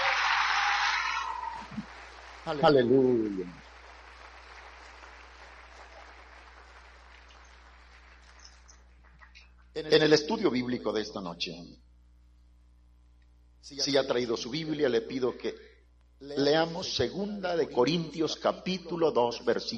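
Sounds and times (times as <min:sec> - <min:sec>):
audience applause: 0:00.0 - 0:09.4
speech: 0:02.4 - 0:03.7, 0:09.8 - 0:11.9, 0:13.6 - 0:19.7.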